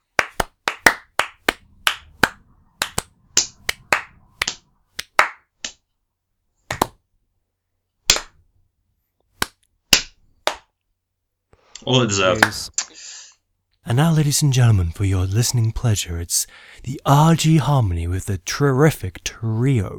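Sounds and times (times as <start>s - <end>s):
round of applause: 0.2s - 5.4s
speech: 11.8s - 13.1s, 13.8s - 19.9s.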